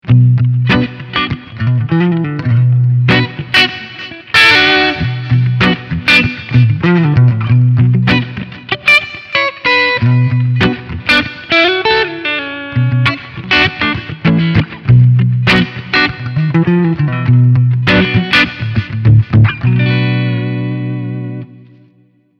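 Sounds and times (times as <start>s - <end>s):
clean electric guitar on front HB pickup: 0.0s - 22.3s.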